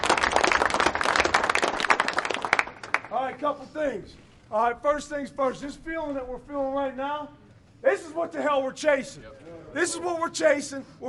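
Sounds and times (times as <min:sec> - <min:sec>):
round of applause: 0:00.0 - 0:03.4
speech: 0:03.3 - 0:11.0.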